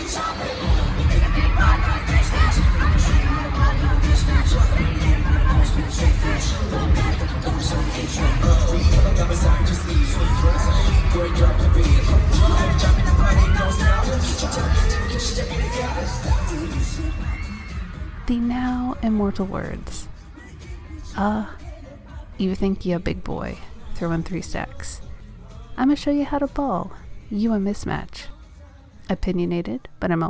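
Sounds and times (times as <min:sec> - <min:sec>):
concert crowd cheering: 0:00.0 - 0:21.1
speech: 0:19.4 - 0:20.1, 0:21.2 - 0:21.6, 0:22.4 - 0:25.0, 0:25.8 - 0:28.3, 0:29.1 - 0:30.2.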